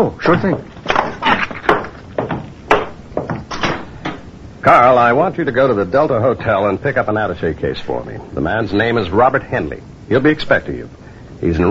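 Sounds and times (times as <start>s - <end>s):
speech: 0.0s - 0.7s, 4.7s - 11.6s
door being closed: 0.8s - 4.3s.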